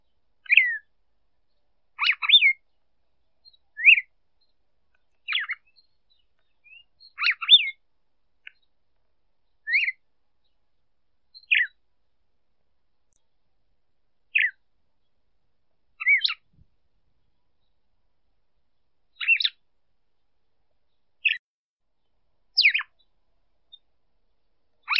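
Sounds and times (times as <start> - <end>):
female red-cowled cardinal calling: 0.4 - 0.9, 1.5 - 2.8, 3.4 - 7.8, 9.6 - 10.6, 11.3 - 11.8, 14.3 - 14.6, 16.0 - 16.6, 19.2 - 19.6, 21.2 - 21.4, 22.6 - 23.1, 24.8 - 24.9.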